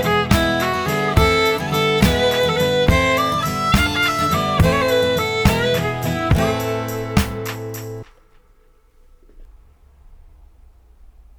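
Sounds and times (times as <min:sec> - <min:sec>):
play-along music track at 70 bpm: 0:00.0 - 0:08.1.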